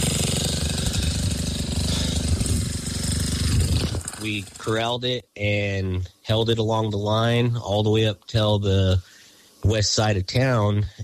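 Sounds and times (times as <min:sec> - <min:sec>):
bulldozer diesel engine rumbling while digging a fire break: 0:00.0 - 0:04.8
speech: 0:04.2 - 0:11.0.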